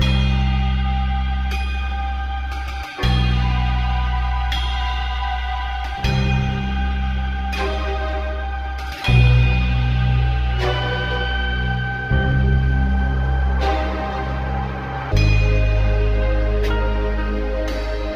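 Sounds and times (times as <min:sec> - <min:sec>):
sad string music: 0:00.0 - 0:18.1.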